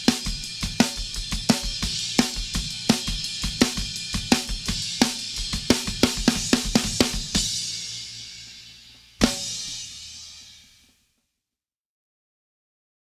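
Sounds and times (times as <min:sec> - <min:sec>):
snare drum: 0:00.0 - 0:07.6, 0:09.2 - 0:09.8.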